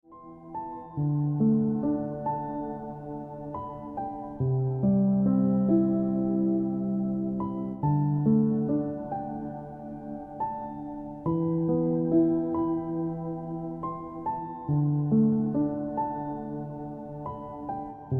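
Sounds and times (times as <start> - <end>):
piano music: 0.0 - 18.1.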